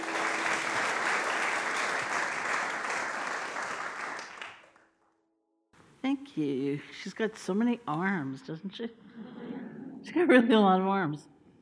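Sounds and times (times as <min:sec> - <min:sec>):
audience applause welcoming back a teacher and author: 0:00.0 - 0:04.9
speech: 0:06.4 - 0:09.4, 0:10.1 - 0:11.3.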